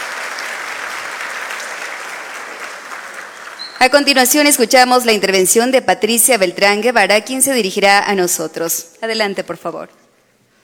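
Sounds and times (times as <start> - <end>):
audience applause: 0.0 - 3.8
speech: 3.8 - 10.0.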